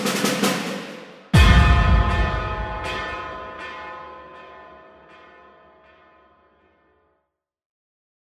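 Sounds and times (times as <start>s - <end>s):
fanfare in three variations: 1.4s - 3.5s.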